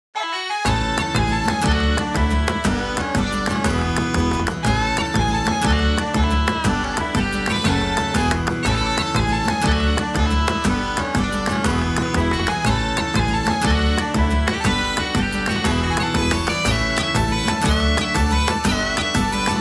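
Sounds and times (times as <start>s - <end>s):
bagpipe jig: 0.2s - 19.5s.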